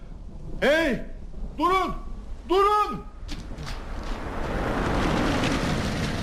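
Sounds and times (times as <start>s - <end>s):
speech: 0.6s - 3.1s
car crash: 3.2s - 6.2s.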